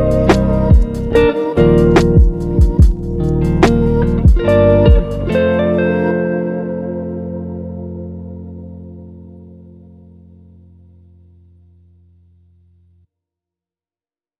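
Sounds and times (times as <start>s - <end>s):
lofi hip hop: 0.0s - 6.2s.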